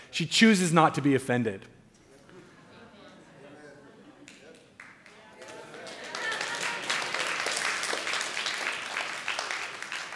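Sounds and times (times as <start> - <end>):
speech: 0.2 - 1.8
audience clapping: 4.2 - 10.1.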